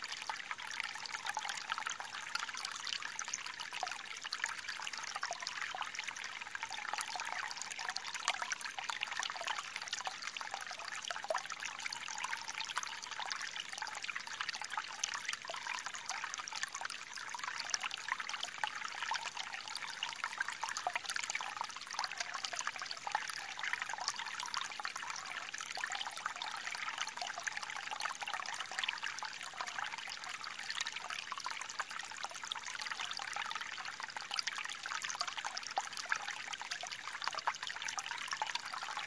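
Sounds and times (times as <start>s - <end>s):
forest stream: 0.0s - 39.0s.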